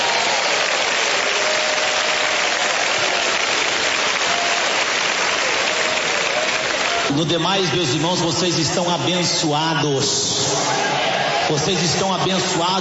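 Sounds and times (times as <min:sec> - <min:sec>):
congregation clapping hands during a church service: 0:00.0 - 0:08.6
speech: 0:07.2 - 0:12.8.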